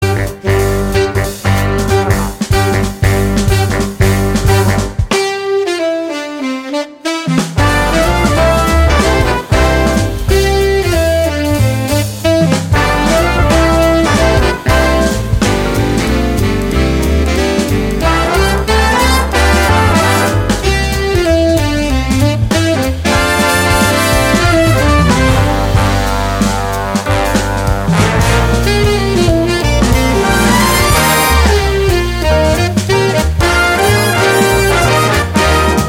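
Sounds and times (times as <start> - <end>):
big band Christmas carol instrumental: 0.0 - 35.8.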